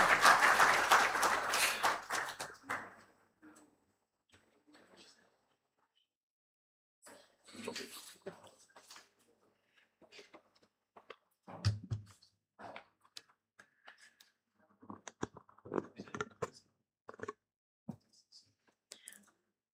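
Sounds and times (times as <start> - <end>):
audience applauding warmly: 0.0 - 3.0.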